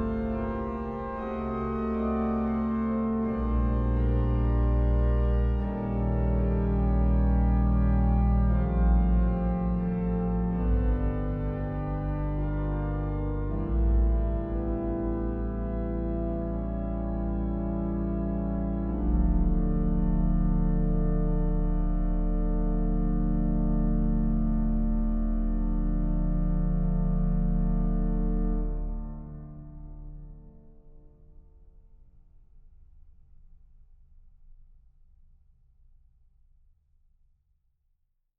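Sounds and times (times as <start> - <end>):
organist playing organ: 0.0 - 30.2.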